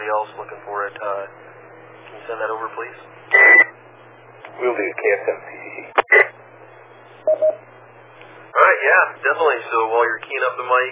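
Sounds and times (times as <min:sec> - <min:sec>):
speech: 0:00.2 - 0:03.6, 0:04.6 - 0:06.0, 0:07.2 - 0:07.7, 0:08.6 - 0:10.9
telephone dialing tones: 0:07.3 - 0:07.6.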